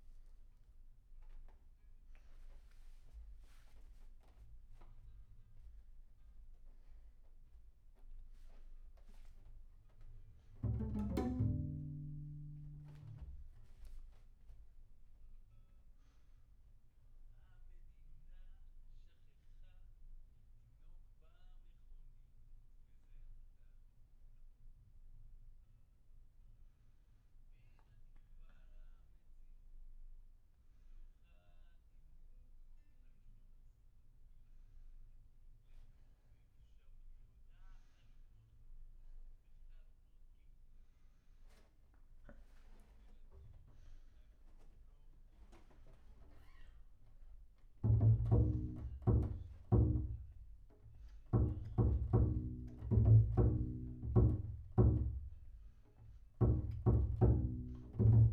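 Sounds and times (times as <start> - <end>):
bass sound: 10.6 - 13.2, 47.8 - 50.4, 51.3 - 55.4, 56.4 - 58.3.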